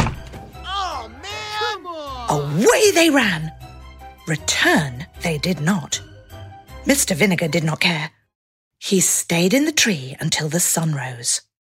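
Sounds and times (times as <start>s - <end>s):
heavy wooden door dropped onto people's heads: 0.0s - 0.6s
people yelping in pain and alarm: 0.6s - 3.0s
speech: 2.3s - 3.6s, 4.3s - 6.1s, 6.8s - 8.2s, 8.8s - 11.5s.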